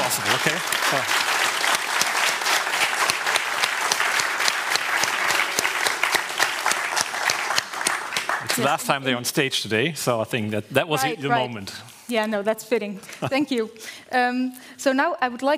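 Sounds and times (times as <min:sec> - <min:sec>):
audience applause: 0:00.0 - 0:09.3
speech: 0:00.4 - 0:01.2, 0:08.6 - 0:15.5.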